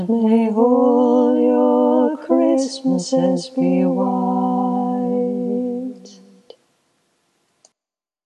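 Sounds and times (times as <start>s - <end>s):
choir singing: 0.0s - 6.4s.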